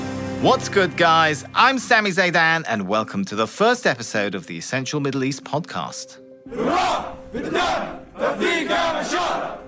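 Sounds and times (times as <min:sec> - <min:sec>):
speech: 0:00.4 - 0:09.6
Syrian fighters chanting in unison while lined up to enroll: 0:06.5 - 0:09.6.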